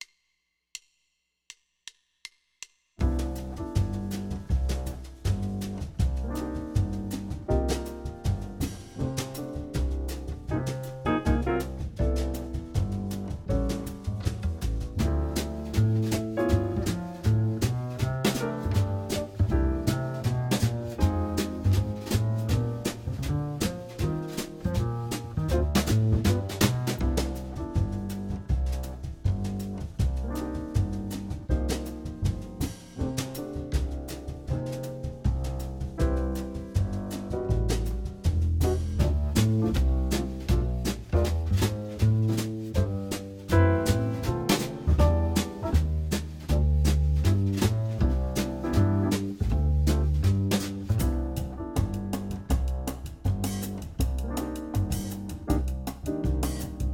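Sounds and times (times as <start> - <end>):
jazz etude: 3.0 - 56.9.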